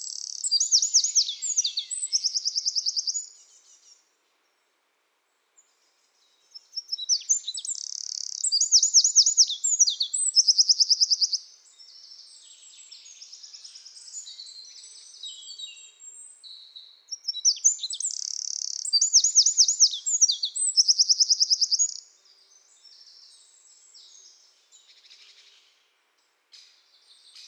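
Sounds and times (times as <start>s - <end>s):
Eurasian wren singing: 0.0s - 3.3s, 6.8s - 11.4s, 17.1s - 22.0s.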